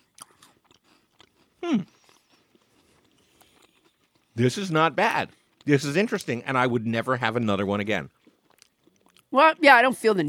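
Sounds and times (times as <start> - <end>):
crunchy chewing of a Kit Kat: 0.0 - 6.0, 8.1 - 9.3
speech: 1.6 - 2.0, 4.4 - 8.2, 9.3 - 10.2.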